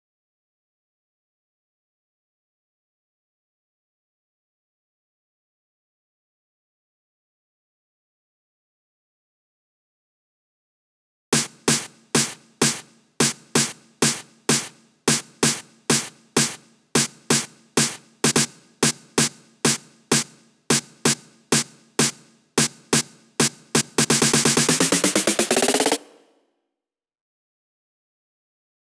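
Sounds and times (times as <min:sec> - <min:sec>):
snare drum at 128 BPM: 0:11.4 - 0:26.3.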